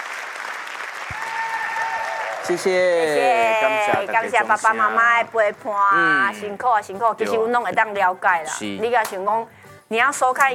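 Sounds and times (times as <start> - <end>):
crowd applause: 0.0 - 4.5
speech: 2.4 - 10.5.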